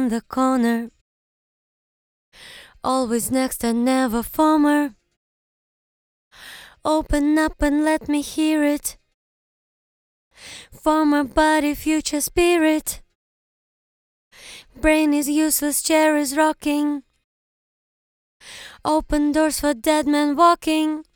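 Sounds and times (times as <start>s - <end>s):
a cappella vocals singing a verse in English: 0.0s - 1.0s, 2.4s - 5.1s, 6.4s - 9.0s, 10.4s - 13.2s, 14.4s - 17.2s, 18.4s - 21.1s.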